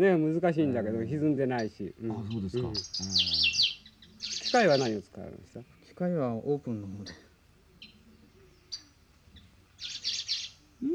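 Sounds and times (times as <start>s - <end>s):
speech: 0.0s - 3.6s, 4.5s - 7.2s
bird chicks chirping: 1.6s - 6.2s, 7.0s - 10.8s.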